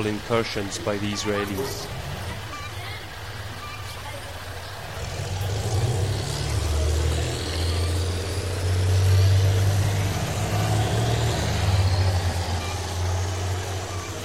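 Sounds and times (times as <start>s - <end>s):
speech: 0.0s - 2.0s
tank engine rumbling: 0.0s - 14.2s.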